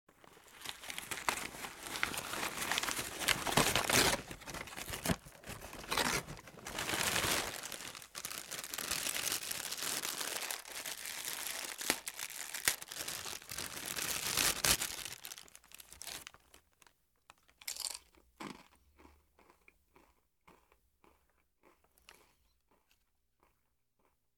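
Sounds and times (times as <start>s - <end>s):
bag of potato chips opening: 0.3s - 16.5s.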